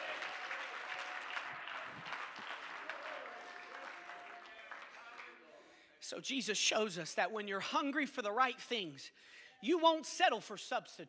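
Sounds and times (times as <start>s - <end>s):
audience clapping hands: 0.0s - 5.5s
speech: 6.1s - 11.0s.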